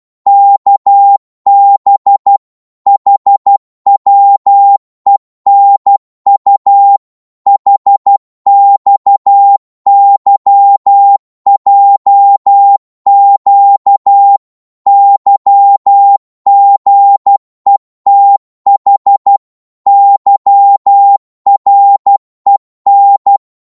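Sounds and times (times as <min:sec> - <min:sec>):
Morse code at 12 wpm: 0:00.3 - 0:23.6.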